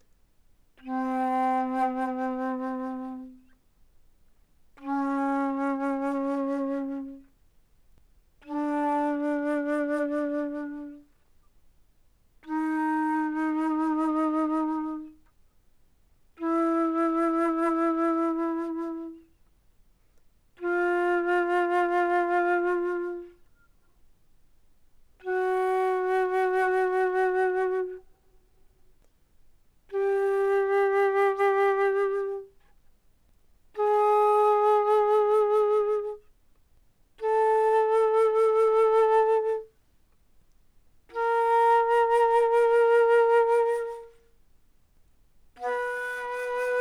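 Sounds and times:
alto flute: 0.7 - 3.7, 4.7 - 7.4, 8.4 - 11.5, 12.4 - 15.5, 16.3 - 19.6, 20.5 - 24.0, 25.2 - 29.1, 29.9 - 32.8, 33.7 - 36.4, 37.2 - 39.8, 41.1 - 44.4, 45.5 - 46.7.

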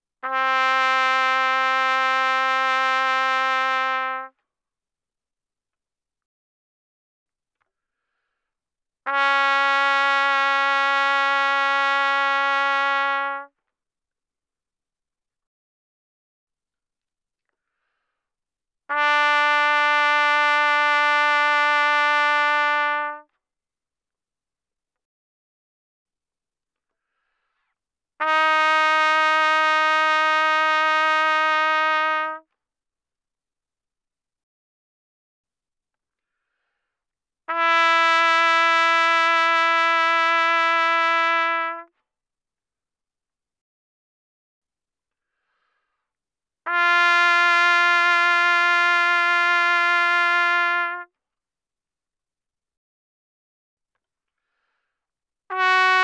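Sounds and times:
trumpet playing loud notes with vibrato: 0.2 - 4.3, 9.1 - 13.5, 18.9 - 23.2, 28.2 - 32.4, 37.5 - 41.9, 46.7 - 51.1, 55.5 - 56.0.

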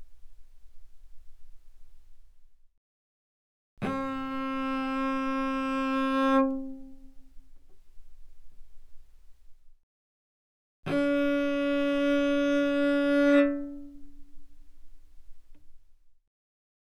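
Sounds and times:
cello bowed fortissimo on D string: 3.8 - 7.9, 10.9 - 15.7.

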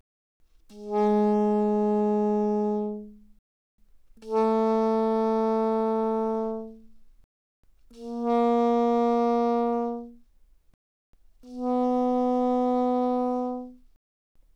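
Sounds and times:
soprano saxophone notes without vibrato: 0.7 - 3.2, 4.2 - 6.9, 7.9 - 10.2, 11.4 - 13.8.

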